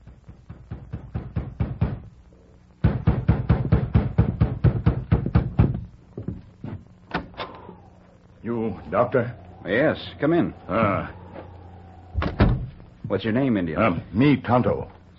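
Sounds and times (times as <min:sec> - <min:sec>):
knock at a wooden door: 0:00.0 - 0:02.1, 0:02.8 - 0:05.8
speech: 0:08.5 - 0:11.2, 0:13.1 - 0:15.0.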